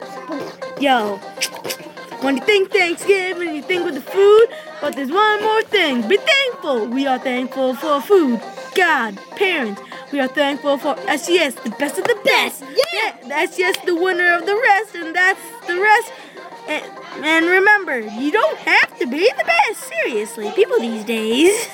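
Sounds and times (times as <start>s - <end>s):
rap music: 0.0s - 21.7s.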